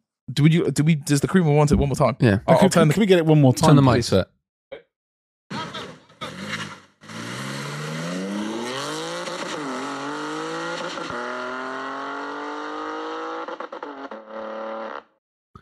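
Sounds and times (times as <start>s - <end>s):
speech: 0.4s - 4.4s
sports car engine revving off rev limiter: 6.1s - 15.0s.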